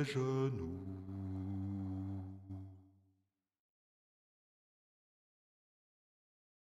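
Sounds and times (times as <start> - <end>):
Christmas carol bass part: 0.5 - 2.6.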